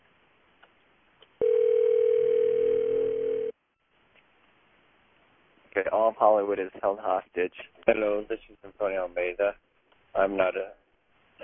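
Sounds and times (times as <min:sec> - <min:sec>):
telephone ringing with an electronic tone: 0:01.4 - 0:03.6
speech: 0:06.1 - 0:09.6, 0:10.2 - 0:10.8.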